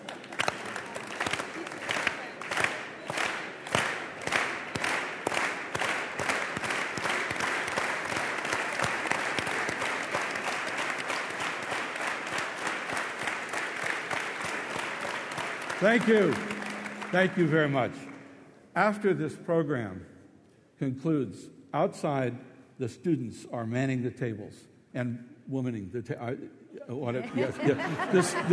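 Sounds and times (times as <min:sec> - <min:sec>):
audience applause: 0:00.0 - 0:18.2
speech: 0:15.8 - 0:16.5, 0:17.1 - 0:18.0, 0:18.8 - 0:20.1, 0:20.8 - 0:28.5
laughter: 0:26.8 - 0:28.5.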